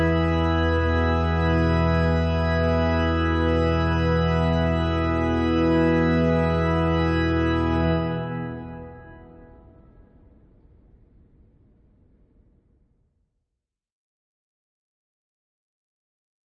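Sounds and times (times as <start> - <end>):
canzona for solo bass: 0.0 - 9.6.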